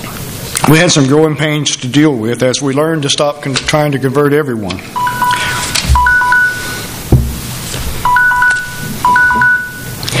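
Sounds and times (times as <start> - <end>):
speech: 0.7 - 5.0
electronic timer beeping: 5.0 - 6.9, 8.0 - 10.0.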